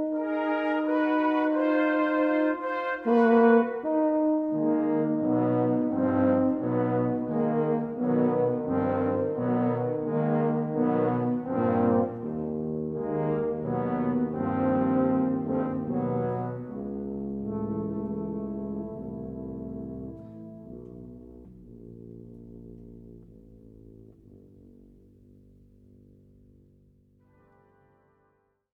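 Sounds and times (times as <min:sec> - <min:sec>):
slow tuba concerto played with a brass band: 0:00.0 - 0:23.5.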